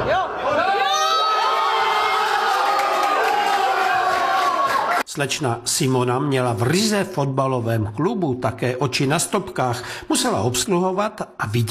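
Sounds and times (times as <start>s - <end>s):
football fans shouting and whooping: 0.0s - 5.0s
football fans cheering a goal in a pub: 0.0s - 5.1s
speech: 5.2s - 11.7s.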